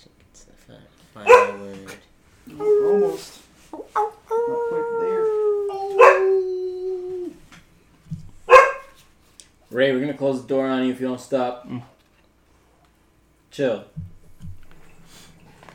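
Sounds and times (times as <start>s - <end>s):
speech: 0.7s - 3.4s, 9.8s - 12.0s, 13.6s - 14.1s
dog howling and barking: 1.3s - 1.6s, 2.6s - 3.3s, 3.9s - 7.4s, 8.5s - 9.0s.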